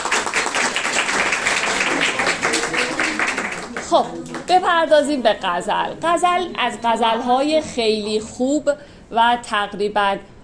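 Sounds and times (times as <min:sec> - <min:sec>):
classroom audience at a poetry lecture applauding: 0:00.0 - 0:04.5
speech: 0:03.9 - 0:10.3.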